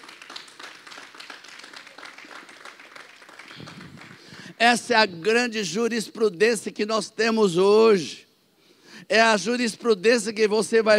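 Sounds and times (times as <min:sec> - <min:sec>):
audience applauding: 0:00.0 - 0:04.5
speech: 0:04.6 - 0:08.2, 0:09.1 - 0:10.9.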